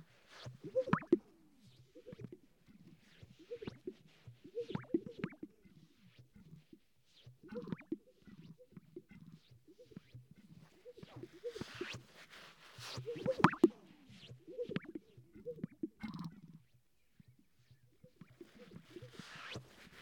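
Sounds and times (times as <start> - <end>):
sage-grouse display popping and bubbling: 0.4 - 6.7, 7.4 - 12.0, 12.9 - 16.7.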